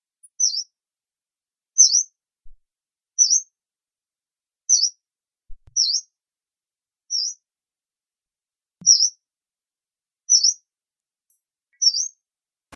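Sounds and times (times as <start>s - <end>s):
yellow-browed warbler: 5.8s - 6.0s, 8.8s - 9.1s, 10.3s - 10.6s, 11.8s - 12.1s.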